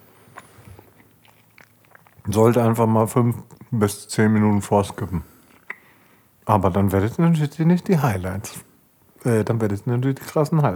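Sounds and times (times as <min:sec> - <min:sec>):
person eating and chewing food: 0:00.1 - 0:02.6, 0:05.4 - 0:05.9
speech: 0:02.3 - 0:05.3, 0:06.5 - 0:10.7.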